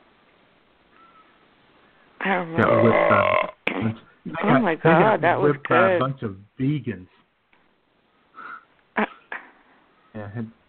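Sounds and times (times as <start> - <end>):
speech: 2.2 - 7.2, 10.2 - 10.6
belch: 2.6 - 4.0.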